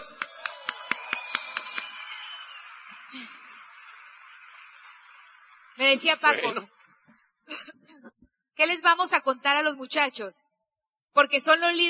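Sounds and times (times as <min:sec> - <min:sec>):
audience applause: 0:00.0 - 0:06.6
speech: 0:05.8 - 0:06.8, 0:08.6 - 0:10.5, 0:11.2 - 0:11.8
laughter: 0:06.3 - 0:06.6.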